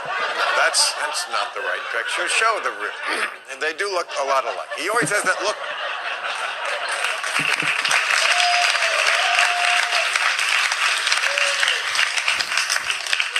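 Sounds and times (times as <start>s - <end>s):
laughter: 0.0s - 13.3s
speech: 0.7s - 6.3s
audience applause: 6.2s - 13.3s.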